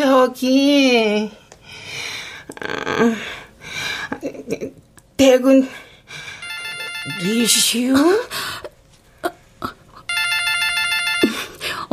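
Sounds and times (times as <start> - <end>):
speech: 0.1 - 1.8, 2.6 - 3.4, 4.1 - 6.2, 7.1 - 8.6
telephone ringing with electronic trill: 6.4 - 7.8, 10.1 - 11.6.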